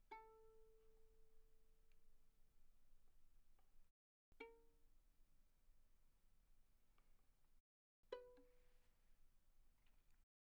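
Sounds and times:
soft violin pizzicato on the A string: 0:00.0 - 0:02.0, 0:04.4 - 0:07.5, 0:08.1 - 0:10.2.

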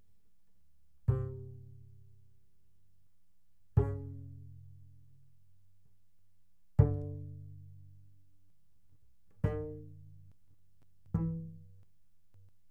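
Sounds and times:
double bass pizzicato fortissimo on E string: 0:01.1 - 0:02.1, 0:03.8 - 0:05.1, 0:06.8 - 0:08.1, 0:09.4 - 0:10.4, 0:11.1 - 0:11.8.

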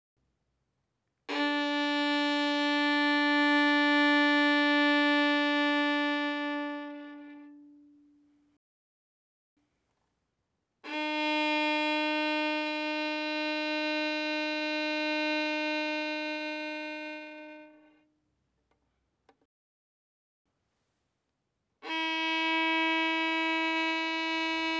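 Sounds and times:
violin bowed fortissimo on the D string: 0:01.3 - 0:08.2, 0:10.8 - 0:18.0, 0:21.8 - 0:24.7.

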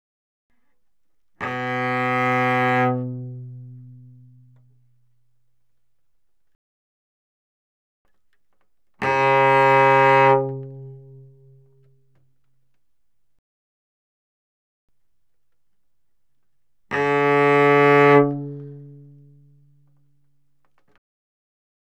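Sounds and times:
cello bowed fortissimo on the G string: 0:01.4 - 0:05.1, 0:09.0 - 0:12.0, 0:16.9 - 0:20.1.

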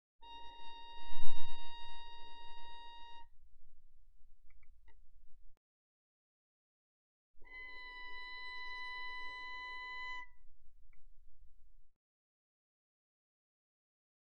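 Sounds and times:
violin arco pianissimo on the D string: 0:00.2 - 0:03.3, 0:07.4 - 0:10.5.

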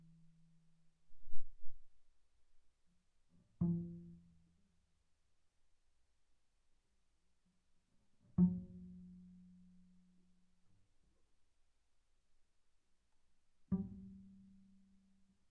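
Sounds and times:
double bass pizzicato on D string pianissimo: 0:08.4 - 0:09.4, 0:13.7 - 0:14.6.

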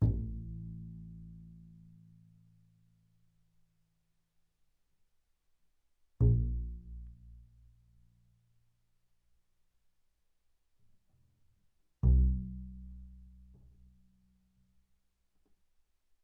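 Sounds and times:
loud double bass pizzicato on the E string: 0:00.0 - 0:01.8, 0:06.2 - 0:07.8, 0:12.0 - 0:14.0.

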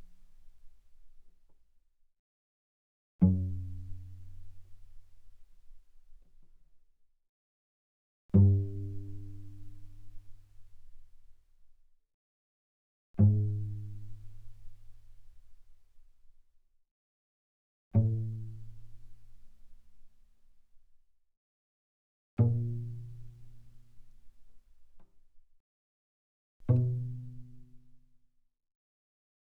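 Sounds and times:
cello pizzicato mezzo-forte on the C string: 0:03.2 - 0:05.6, 0:08.4 - 0:11.0, 0:13.2 - 0:15.4, 0:18.0 - 0:19.7, 0:22.4 - 0:24.7, 0:26.7 - 0:27.9.

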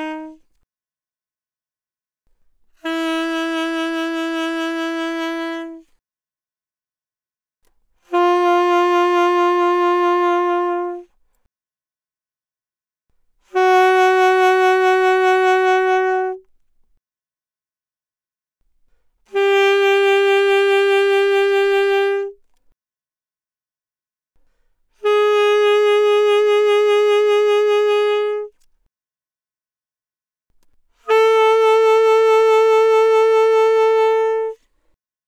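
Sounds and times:
alto saxophone with vibrato: 0:00.0 - 0:00.4, 0:02.8 - 0:05.9, 0:08.1 - 0:11.2, 0:13.5 - 0:16.4, 0:19.3 - 0:22.4, 0:25.0 - 0:28.6, 0:31.0 - 0:34.7.

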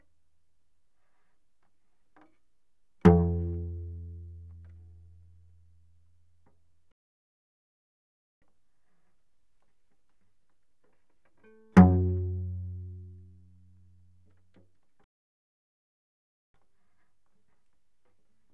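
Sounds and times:
cello pizzicato fortissimo on the C string, C2 to A2: 0:03.0 - 0:05.7, 0:11.4 - 0:14.2.

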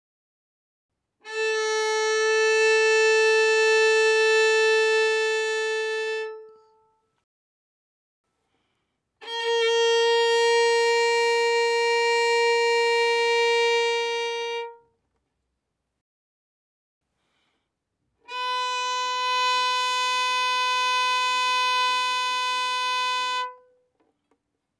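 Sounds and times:
violin bowed fortissimo on the A string: 0:01.3 - 0:06.8, 0:09.2 - 0:14.8, 0:18.3 - 0:23.6.

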